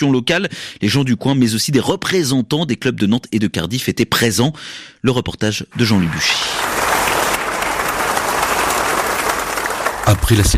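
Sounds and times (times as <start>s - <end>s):
speech: 0.0s - 6.7s, 10.1s - 10.5s
applause as coffin leaves the sports hall of club San Martín: 5.8s - 10.5s.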